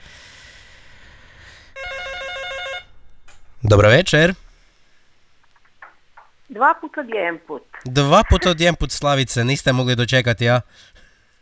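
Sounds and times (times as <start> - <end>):
telephone bell ringing for an incoming call: 1.8 - 2.9
speech: 3.6 - 4.4, 6.6 - 11.0.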